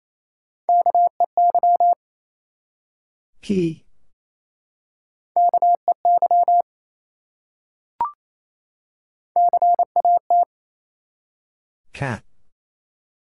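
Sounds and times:
Morse code beeps spelling a word: 0.7 - 2.0, 5.4 - 6.6, 9.4 - 10.5
speech: 3.4 - 3.8, 12.0 - 12.3.

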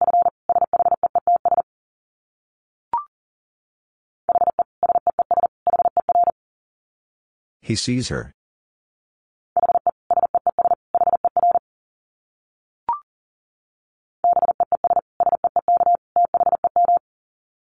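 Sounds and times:
fast Morse code tones at 40 words per minute: 0.0 - 1.6, 4.3 - 6.3, 9.6 - 11.6, 14.2 - 17.0
speech: 7.7 - 8.4.

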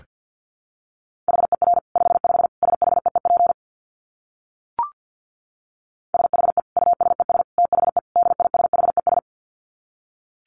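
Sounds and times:
Morse code tones at 50 words per minute: 1.3 - 3.6, 6.2 - 9.2.

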